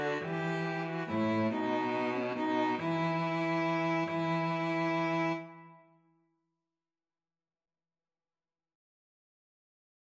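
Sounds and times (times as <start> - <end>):
string trio playing: 0.0 - 5.8.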